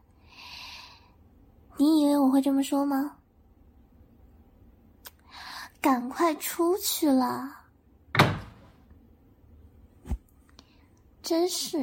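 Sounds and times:
speech: 1.8 - 3.2, 5.8 - 7.6, 11.3 - 11.8
door being shut: 8.1 - 8.7.

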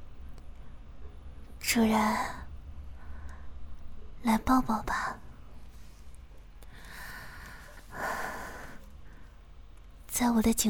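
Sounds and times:
soft hiss: 0.0 - 10.6
speech: 1.7 - 2.4, 4.2 - 5.2, 10.2 - 10.6
heavy breathing close to the ear in intimate role-play: 6.6 - 9.4.

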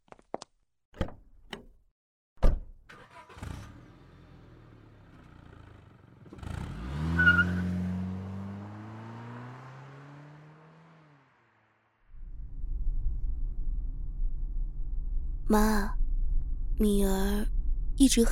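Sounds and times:
car driving off, engine revving: 3.1 - 11.8
low rough engine rumble: 12.1 - 18.3
speech: 15.5 - 16.0, 16.8 - 18.3.

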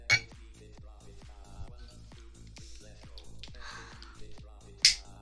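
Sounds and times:
glasses clinking in a toast: 0.1 - 0.3, 4.8 - 5.1.

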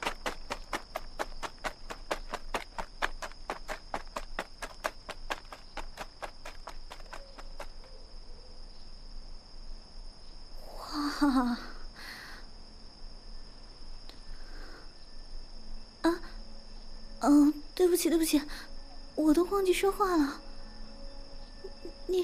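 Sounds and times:
footsteps running up a stairway: 0.0 - 7.8
speech: 11.2 - 11.7, 17.3 - 20.4, 22.1 - 22.2.

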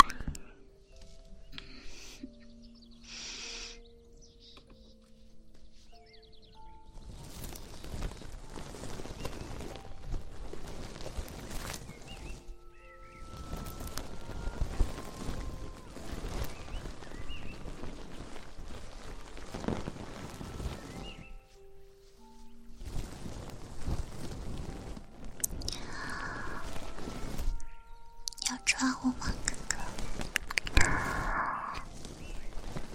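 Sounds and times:
goose feather wand brushing: 7.2 - 28.1, 28.8 - 32.9.

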